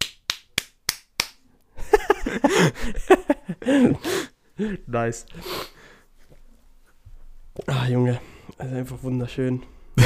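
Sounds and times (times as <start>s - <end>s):
slapping smacks: 0.0s - 1.4s
laughter: 1.8s - 4.0s
speech: 2.4s - 5.7s, 7.8s - 9.8s.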